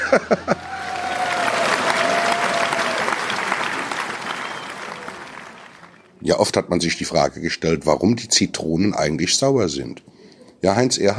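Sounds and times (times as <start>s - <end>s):
laughter: 0.0s - 5.2s
audience applause: 0.0s - 6.1s
speech: 0.1s - 0.8s, 6.2s - 11.1s.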